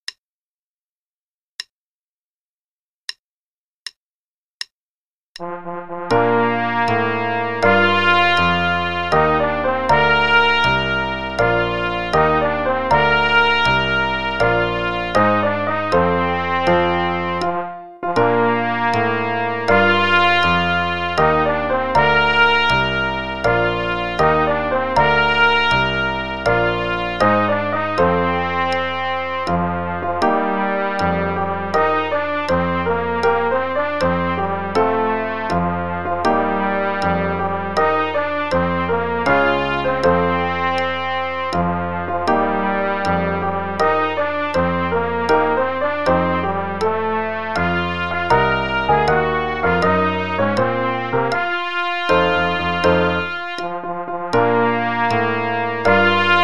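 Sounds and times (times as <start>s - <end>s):
piano: 5.4s - 56.4s.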